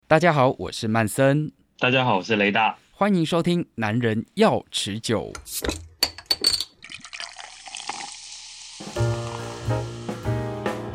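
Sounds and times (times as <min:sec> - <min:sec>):
speech: 0:00.1 - 0:06.2
beer glugging into a glass: 0:05.4 - 0:09.9
beer bottle opening clinks: 0:05.6 - 0:06.8
hissing release of beer fizz: 0:06.8 - 0:10.8.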